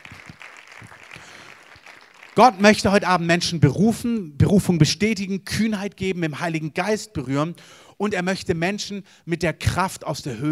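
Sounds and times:
audience applause: 0.0s - 2.7s
speech: 2.4s - 10.5s.

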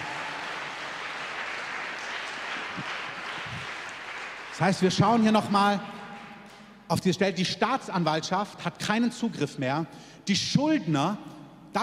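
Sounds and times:
audience applause: 0.0s - 5.3s
speech: 4.6s - 5.9s, 6.9s - 11.8s.

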